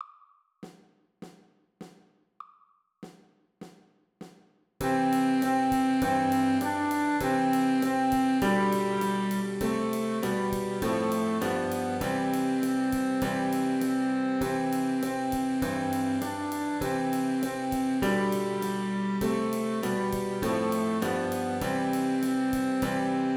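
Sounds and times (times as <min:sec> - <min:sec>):
wind instruments playing a carol: 0:04.8 - 0:23.3.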